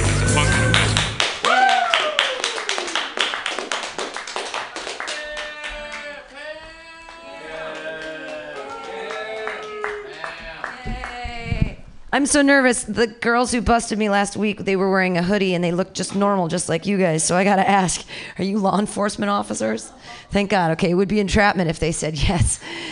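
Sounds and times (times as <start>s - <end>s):
audience clapping: 0.0s - 11.5s
voices whooping and calling out: 0.1s - 2.9s, 5.0s - 11.5s
speech: 12.2s - 22.8s.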